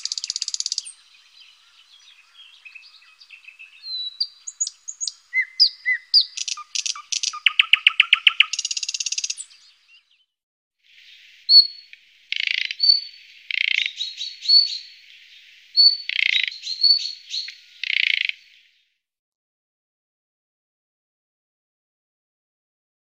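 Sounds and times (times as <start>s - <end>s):
thrush nightingale singing: 0.0s - 10.3s, 10.9s - 18.9s.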